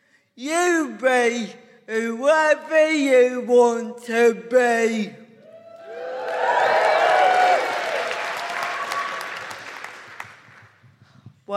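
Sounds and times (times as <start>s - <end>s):
speech: 0.4s - 5.2s
crowd cheering with whoops and shouts: 5.4s - 10.1s
crowd clapping: 5.8s - 11.0s.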